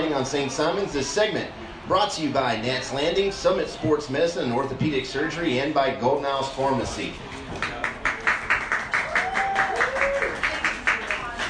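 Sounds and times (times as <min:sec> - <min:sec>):
speech: 0:00.2 - 0:07.7
audience clapping: 0:07.4 - 0:11.4.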